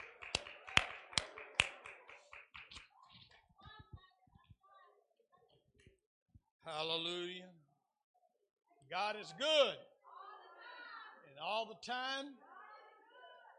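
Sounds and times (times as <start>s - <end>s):
audience hand clapping: 0.0s - 3.4s
speech: 6.7s - 7.5s, 8.9s - 9.9s, 11.4s - 12.4s.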